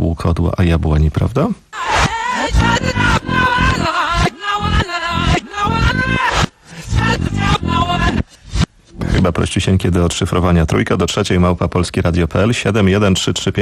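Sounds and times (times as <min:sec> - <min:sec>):
speech: 0:00.2 - 0:01.6, 0:02.5 - 0:03.1, 0:09.2 - 0:13.6
song played backwards with warped vocals: 0:01.8 - 0:09.4.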